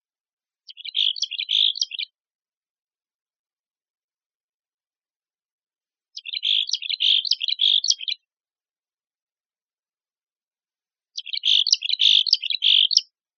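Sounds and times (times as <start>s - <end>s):
Mexican Chickadee calls: 0.7s - 2.1s, 6.2s - 8.2s, 11.2s - 13.1s.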